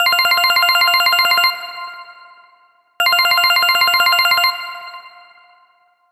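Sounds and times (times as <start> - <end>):
phone ringtone: 0.0 - 1.8, 3.0 - 5.7.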